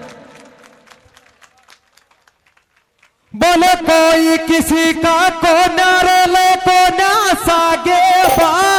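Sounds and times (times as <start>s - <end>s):
faint audience applause: 0.0s - 3.2s
speech: 3.3s - 8.6s.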